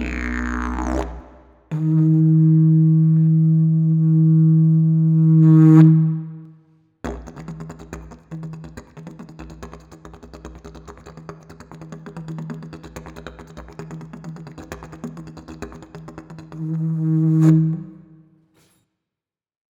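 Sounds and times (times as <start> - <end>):
didgeridoo: 0.0 - 6.4, 7.1 - 18.2.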